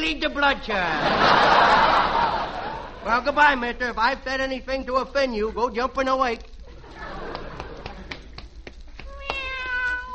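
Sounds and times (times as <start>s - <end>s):
speech: 0.1s - 6.6s
laughter: 0.7s - 3.2s, 6.7s - 8.4s
sharp irregular taps: 7.3s - 10.1s
cat meowing: 9.1s - 10.1s.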